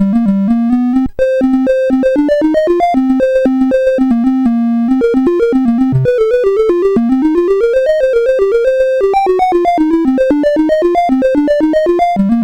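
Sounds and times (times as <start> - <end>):
chiptune music on SID CSG8580R5 chip: 0.0 - 12.4.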